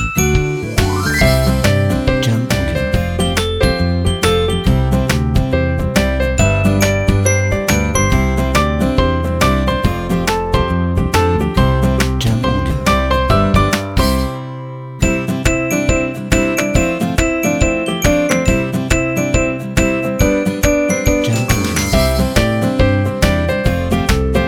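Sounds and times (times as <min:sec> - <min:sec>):
positive happy summer music: 0:00.0 - 0:24.4.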